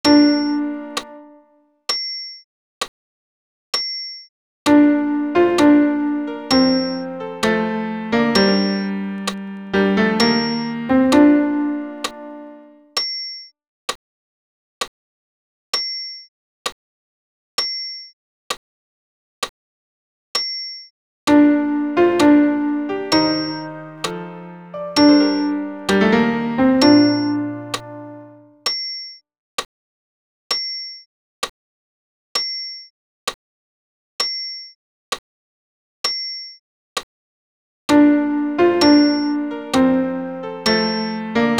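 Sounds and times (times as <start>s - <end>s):
piano accompaniment: 0.0s - 1.4s, 4.7s - 12.9s, 21.3s - 28.6s, 37.9s - 41.5s.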